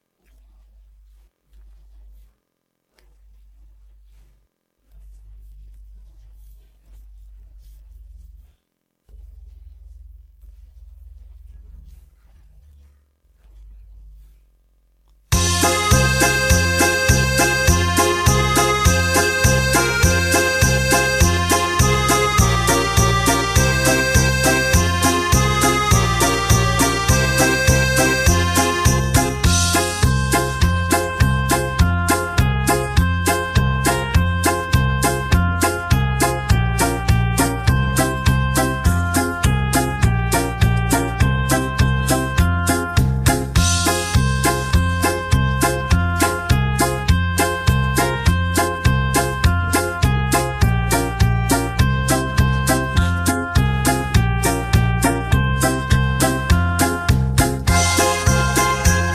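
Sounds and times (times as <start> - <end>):
backing track: 15.3 - 59.1.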